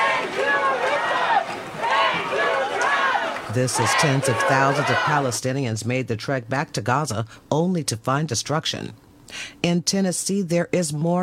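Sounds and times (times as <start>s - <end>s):
crowd cheering and chanting: 0.0s - 5.4s
speech: 3.6s - 11.2s.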